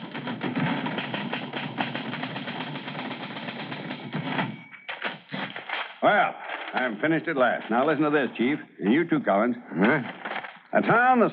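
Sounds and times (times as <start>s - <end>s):
typewriter typing: 0.0s - 8.1s
speech: 6.0s - 10.2s, 10.8s - 11.3s.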